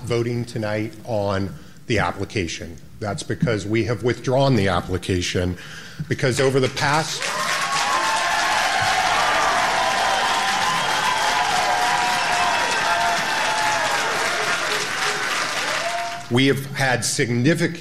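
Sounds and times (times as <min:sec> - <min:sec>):
speech: 0:00.1 - 0:07.6, 0:16.3 - 0:17.8
audience cheering and applauding: 0:06.6 - 0:16.3.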